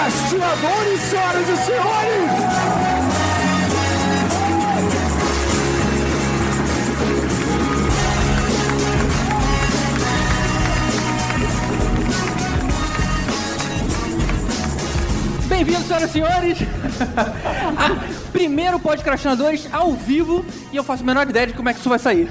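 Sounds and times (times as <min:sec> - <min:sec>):
audience applause: 0:00.0 - 0:15.6
speech: 0:00.5 - 0:02.4, 0:15.7 - 0:22.2
laughter: 0:16.6 - 0:18.3.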